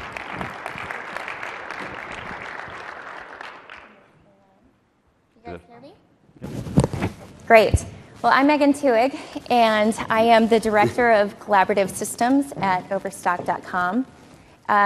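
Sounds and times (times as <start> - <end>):
audience applause: 0.0 - 4.2
speech: 7.5 - 14.8.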